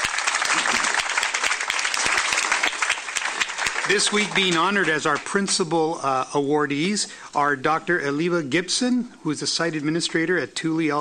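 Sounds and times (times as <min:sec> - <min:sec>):
crowd applauding for teachers: 0:00.0 - 0:05.7
speech: 0:03.9 - 0:10.9.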